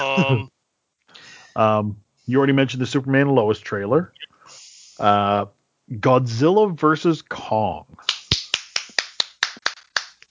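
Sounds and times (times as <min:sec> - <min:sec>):
laughter: 0:00.0 - 0:00.5
speech: 0:00.0 - 0:00.5, 0:01.6 - 0:04.3, 0:05.0 - 0:08.1
sharp crisp hand claps from one person: 0:08.0 - 0:10.3.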